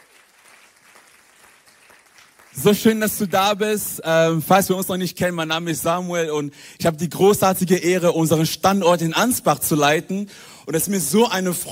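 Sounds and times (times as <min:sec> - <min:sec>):
church congregation applauding at a German Sunday-morning service: 0:00.0 - 0:04.1
speech: 0:02.6 - 0:11.7.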